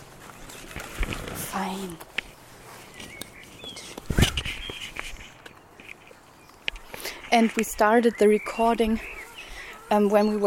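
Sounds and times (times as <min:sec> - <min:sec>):
speech: 0:01.6 - 0:02.1, 0:07.3 - 0:09.2, 0:09.9 - 0:10.4
birds singing: 0:01.6 - 0:10.4
blackbird singing: 0:02.8 - 0:05.7, 0:07.6 - 0:10.4.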